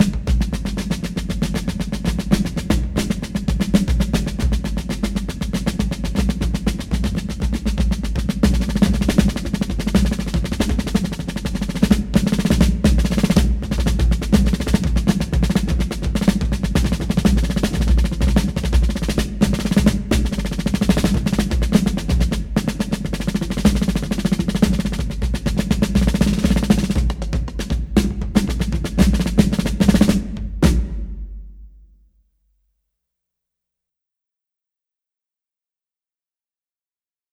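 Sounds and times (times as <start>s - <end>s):
fife and drum corps drum feature: 0.0s - 31.8s.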